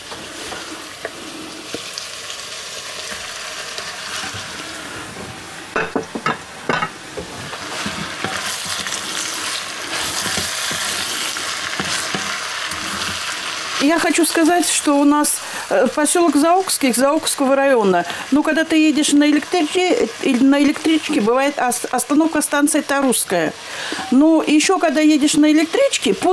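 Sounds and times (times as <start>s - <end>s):
carrots and meat sizzling in a pan: 0.0s - 26.3s
clanks and scrapes as meat is added and stirred: 5.8s - 13.3s, 23.9s - 24.2s
speech: 13.9s - 26.3s.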